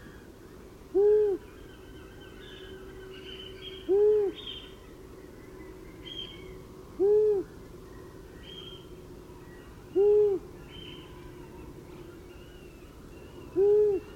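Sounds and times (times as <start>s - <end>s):
long-eared owl hooting: 0.9s - 4.8s, 6.1s - 7.5s, 9.7s - 12.7s, 13.4s - 14.1s.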